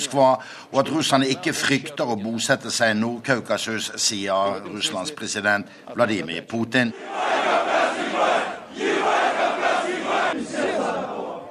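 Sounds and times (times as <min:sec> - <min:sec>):
speech: 0:00.0 - 0:08.5
aggressive football fans chanting in stands: 0:06.9 - 0:11.4.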